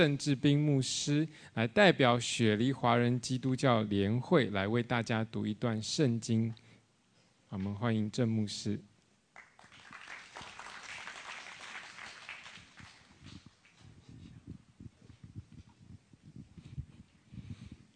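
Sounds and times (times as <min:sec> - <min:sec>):
speech: 0:00.0 - 0:06.6, 0:07.5 - 0:08.9
audience clapping: 0:09.3 - 0:13.8
low thumps and shuffling: 0:13.1 - 0:17.9.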